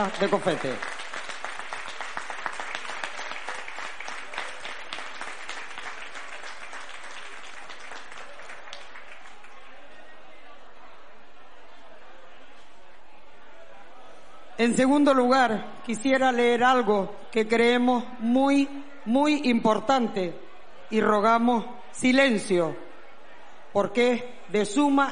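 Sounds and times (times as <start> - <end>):
speech: 0.0 - 1.0, 14.6 - 22.8, 23.7 - 25.0
audience applause: 0.0 - 10.4
low murmur of voices: 0.0 - 25.0.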